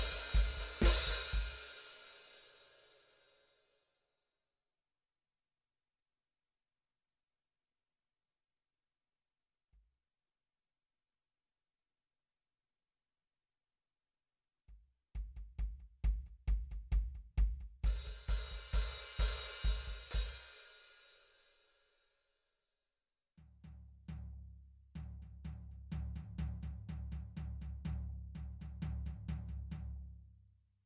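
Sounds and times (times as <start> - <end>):
drum: 0.0 - 2.5, 14.7 - 20.6, 23.6 - 30.1.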